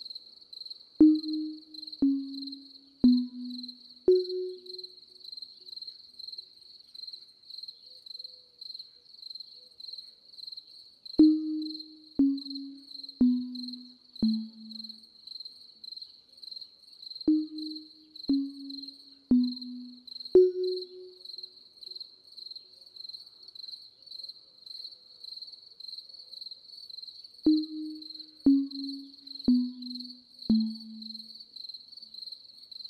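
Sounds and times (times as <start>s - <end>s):
sleep music: 1.0s - 5.2s, 11.2s - 15.1s, 17.3s - 21.4s, 27.5s - 31.4s.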